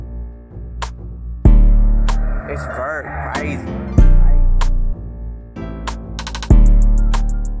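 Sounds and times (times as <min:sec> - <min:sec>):
Detroit type rap beat: 0:01.5 - 0:05.0, 0:06.0 - 0:07.5.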